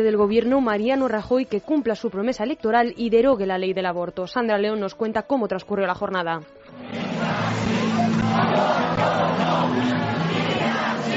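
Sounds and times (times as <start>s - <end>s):
speech: 0.0s - 7.0s
protesters shouting at a demonstration: 7.0s - 11.1s.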